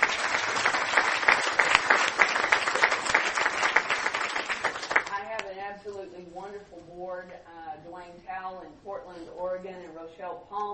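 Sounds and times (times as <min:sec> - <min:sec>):
audience applause: 0:00.0 - 0:05.2
speech: 0:08.9 - 0:10.7.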